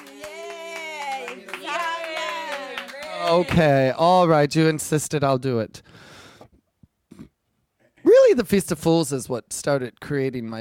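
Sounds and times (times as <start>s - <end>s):
audience clapping: 0.0s - 3.8s
speech: 3.2s - 6.0s, 8.4s - 10.5s.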